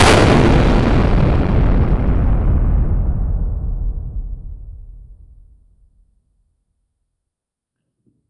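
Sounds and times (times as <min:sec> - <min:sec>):
giant brain exploding with gore: 0:00.0 - 0:05.8.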